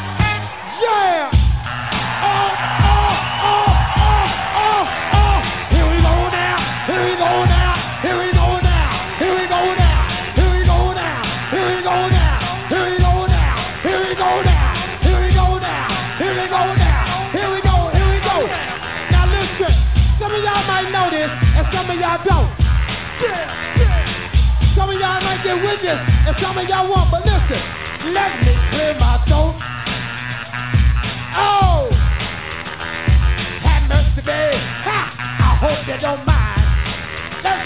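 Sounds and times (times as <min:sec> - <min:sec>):
crowd yelling and whooping: 0:00.0 - 0:32.5
pounding steady bass beat: 0:00.0 - 0:37.6
speech: 0:25.5 - 0:29.8.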